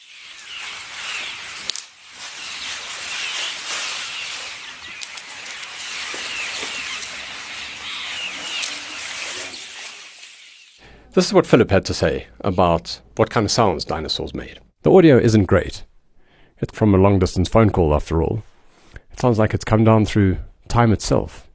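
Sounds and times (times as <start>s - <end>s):
herd of elephants grazing in the Sabi River: 0.0s - 10.7s
rustling in bush: 0.0s - 10.8s
speech: 11.1s - 15.9s, 16.6s - 18.5s, 19.2s - 21.5s.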